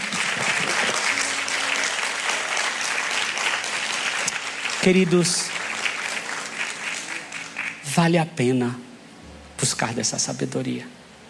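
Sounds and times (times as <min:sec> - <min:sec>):
audience applause: 0:00.0 - 0:08.2
speech: 0:04.8 - 0:05.6, 0:08.0 - 0:08.8, 0:09.6 - 0:11.0.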